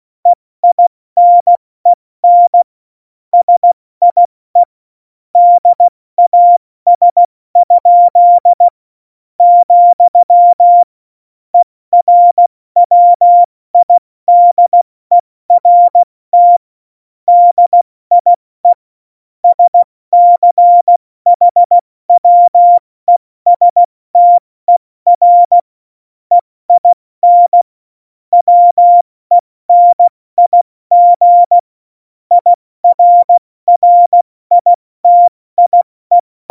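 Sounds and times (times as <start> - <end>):
CW Morse code beeps: 0.6 - 1.6, 2.2 - 2.7, 3.4 - 4.7, 5.4 - 8.7, 9.4 - 10.9, 12.0 - 16.6, 17.3 - 18.8, 19.4 - 25.6, 26.3 - 27.7, 28.3 - 31.6, 32.3 - 36.4.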